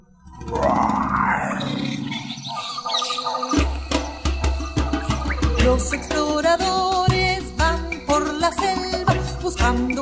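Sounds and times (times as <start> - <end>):
lion roaring: 0.3 - 3.4
lion short rhythmic grunting pulses: 0.3 - 10.0
speech: 5.7 - 6.7.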